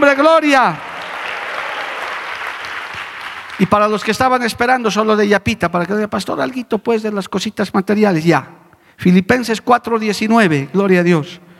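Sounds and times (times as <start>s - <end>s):
speech: 0.0s - 0.9s, 3.6s - 11.5s
people applauding: 0.1s - 4.4s.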